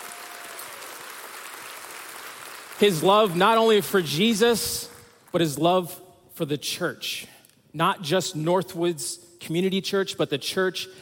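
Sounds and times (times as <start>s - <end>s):
church congregation applauding its pastor: 0.0s - 5.4s
speech: 2.8s - 10.9s.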